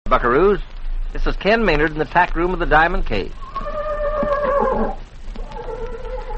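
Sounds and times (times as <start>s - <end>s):
speech: 0.1s - 3.7s, 4.7s - 5.0s
horse neighing in a tack room: 3.4s - 6.3s.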